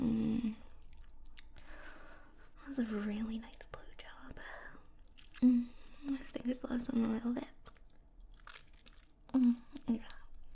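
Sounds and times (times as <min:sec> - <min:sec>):
chocolate squished and chewed in a mouth: 0:00.6 - 0:02.0, 0:04.8 - 0:10.5
speech: 0:02.7 - 0:03.7, 0:06.4 - 0:07.6.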